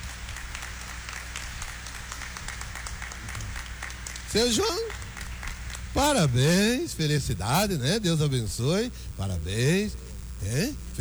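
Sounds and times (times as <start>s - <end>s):
audience applauding: 0.0s - 6.3s
speech: 4.3s - 5.0s, 6.0s - 11.0s.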